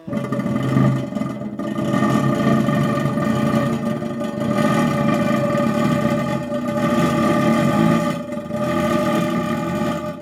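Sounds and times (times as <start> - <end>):
crackler noise-intoner churning a rasping drone: 0.0 - 10.2.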